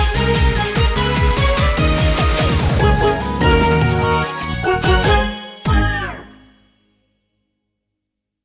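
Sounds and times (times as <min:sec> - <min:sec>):
background music: 0:00.0 - 0:07.1.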